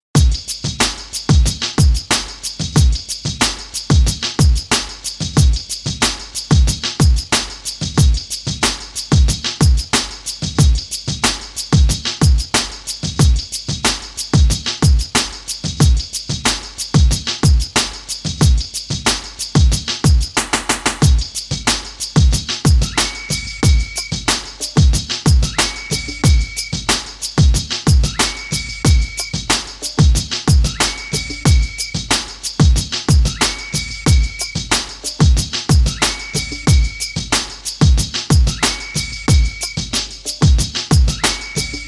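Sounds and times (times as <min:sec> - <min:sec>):
music beats: 0:00.1 - 0:41.8.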